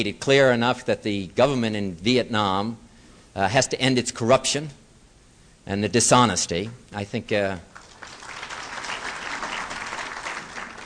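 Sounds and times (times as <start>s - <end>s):
speech: 0.0s - 2.8s, 3.4s - 4.8s, 5.6s - 7.7s
audience applause interrupting a political speech: 7.7s - 10.8s.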